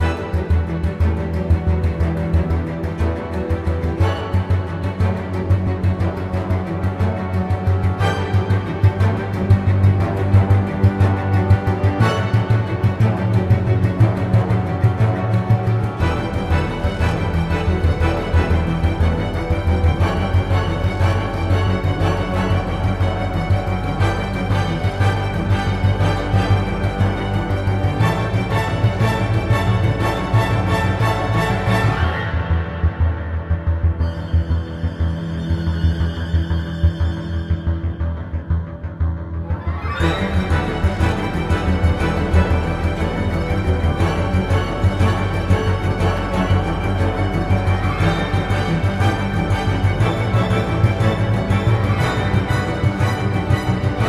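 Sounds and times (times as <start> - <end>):
ambient music: 0.0 - 54.0.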